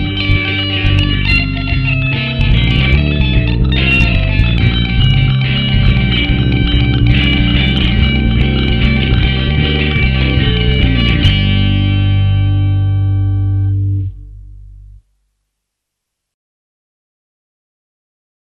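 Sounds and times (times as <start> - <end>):
cowboy guitar: 0.0 - 14.3.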